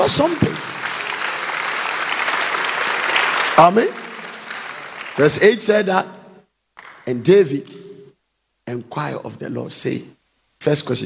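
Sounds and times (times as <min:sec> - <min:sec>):
speech: 0:00.0 - 0:00.8, 0:03.6 - 0:04.0, 0:05.2 - 0:06.2, 0:07.1 - 0:07.8, 0:08.7 - 0:11.0
hands clapping: 0:00.0 - 0:05.8, 0:06.8 - 0:07.8.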